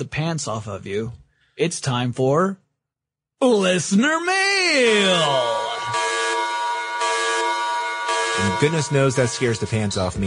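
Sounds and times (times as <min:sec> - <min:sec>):
speech: 0:00.0 - 0:02.6, 0:03.4 - 0:05.7, 0:08.5 - 0:10.2
loud blaring alarm: 0:04.7 - 0:10.2.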